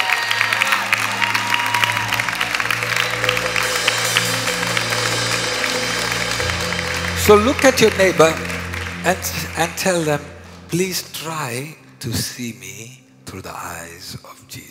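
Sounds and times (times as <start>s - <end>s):
audience clapping hands: 0.0s - 11.4s
sustained low organ-like tones: 0.0s - 12.2s
speech: 7.3s - 8.4s, 9.0s - 14.6s.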